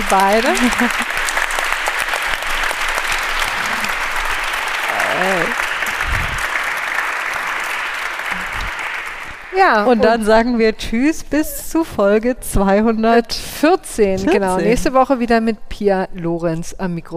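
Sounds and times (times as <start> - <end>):
audience applause: 0.0 - 10.0
speech: 0.1 - 1.1, 9.6 - 17.1
laughter: 0.4 - 1.2, 4.8 - 6.6.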